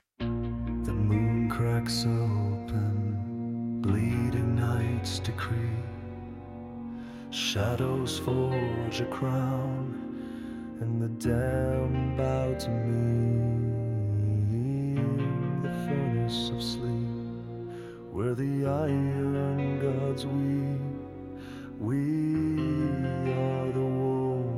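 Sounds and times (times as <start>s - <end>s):
metal ballad: 0.2s - 24.5s.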